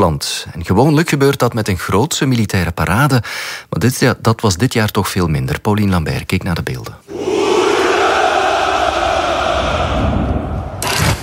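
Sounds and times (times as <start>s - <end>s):
speech: 0.0s - 7.4s
crowd shouting hurrah at a Russian Victory Day celebration: 7.1s - 10.8s.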